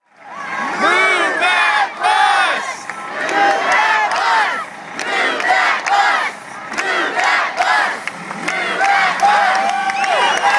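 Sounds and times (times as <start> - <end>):
live audience shouting out suggestions: 0.2 - 10.5
audience whoops and cheers: 9.2 - 10.5.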